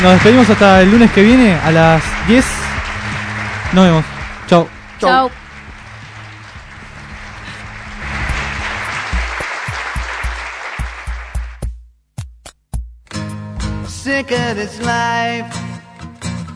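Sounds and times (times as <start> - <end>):
speech: 0.0 - 2.6, 3.7 - 5.4, 14.2 - 15.6
crowd applause: 0.0 - 11.7.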